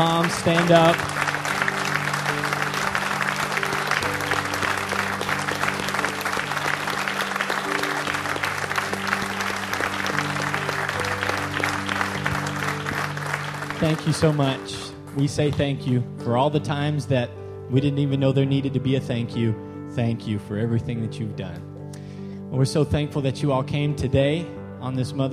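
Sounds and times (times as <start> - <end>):
speech: 0.0 - 1.2, 13.8 - 21.7, 22.5 - 25.3
audience applause for mothers: 0.0 - 15.2.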